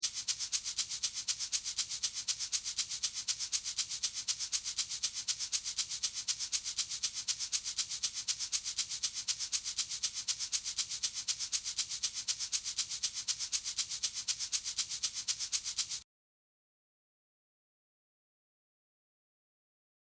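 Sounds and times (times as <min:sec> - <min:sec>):
shaker: 0:00.0 - 0:16.0.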